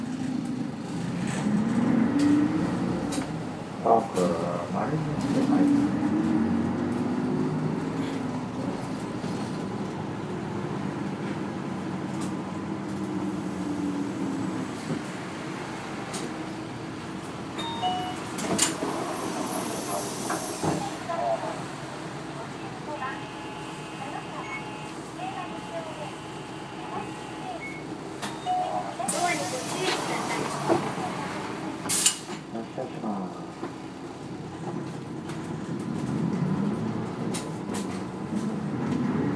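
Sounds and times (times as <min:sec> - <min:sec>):
bus engine drone in Hakata: 0:00.0 - 0:39.3
voices murmuring: 0:19.8 - 0:31.6.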